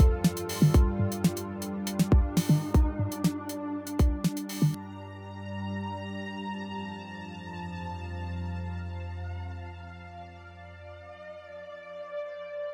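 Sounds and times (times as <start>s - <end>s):
ambient music with a beat: 0.0s - 5.1s.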